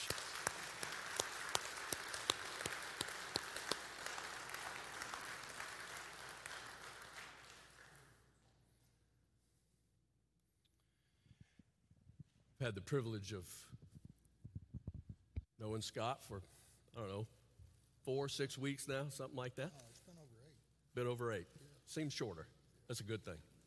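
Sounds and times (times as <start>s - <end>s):
audience applause welcoming a speaker to the stage: 0.0s - 8.2s
speech: 12.6s - 13.8s, 15.7s - 17.4s, 18.1s - 20.0s, 21.0s - 23.5s.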